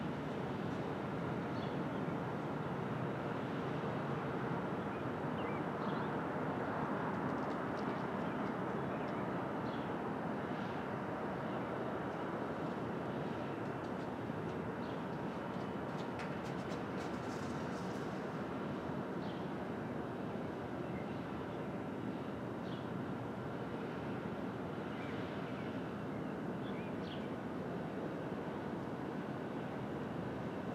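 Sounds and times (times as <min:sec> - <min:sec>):
Brooklyn street traffic rumble at dawn: 0:00.0 - 0:30.7
faint higher chirps and clicks: 0:07.2 - 0:09.2.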